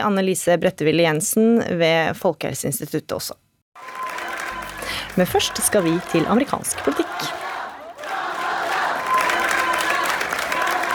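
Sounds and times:
speech: 0.0 - 3.4, 5.2 - 7.4
crowd of supporters cheering and applauding at campaign launch: 3.8 - 10.9.

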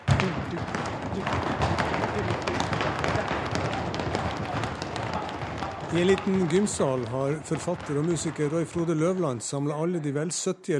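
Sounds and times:
children stomping: 0.0 - 8.6
speech: 5.9 - 10.7.

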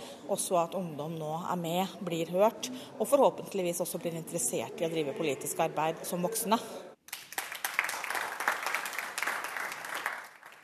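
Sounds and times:
speech: 0.3 - 6.9
applause for a student: 7.0 - 10.6.

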